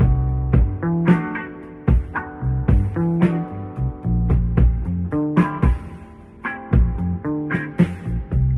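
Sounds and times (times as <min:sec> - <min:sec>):
bass: 0:00.0 - 0:08.5.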